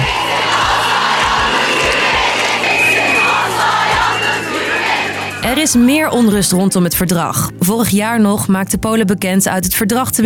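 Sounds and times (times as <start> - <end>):
women protesting in the street, shouting and chanting: 0.0 - 6.4
speech: 5.6 - 10.2.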